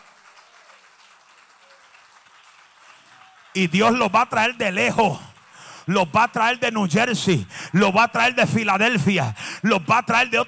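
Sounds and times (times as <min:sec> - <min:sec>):
audience applause: 0:00.0 - 0:06.6
speech: 0:03.6 - 0:05.3, 0:05.9 - 0:10.4.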